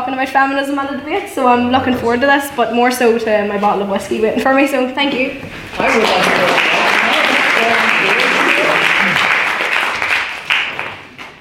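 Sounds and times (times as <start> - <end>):
speech: 0.2 - 6.7
audience applause: 5.8 - 11.2.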